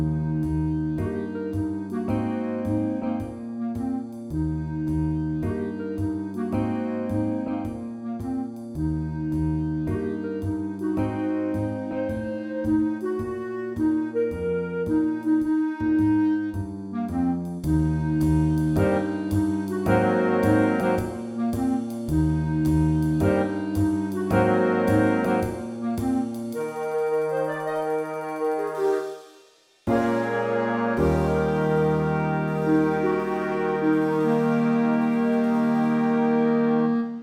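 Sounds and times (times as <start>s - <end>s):
jazz combo playing: 0.0s - 37.2s.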